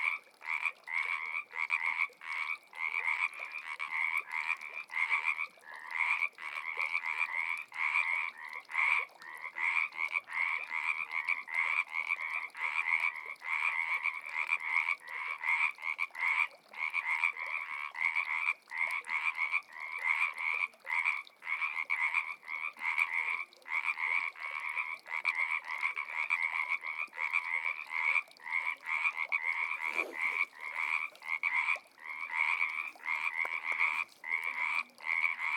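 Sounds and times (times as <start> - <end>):
frogs: 0.0 - 35.5.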